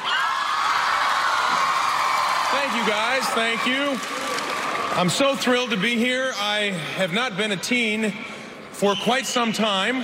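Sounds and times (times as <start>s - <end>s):
large crowd cheering and whooping: 0.0s - 5.0s
speech: 2.6s - 10.0s.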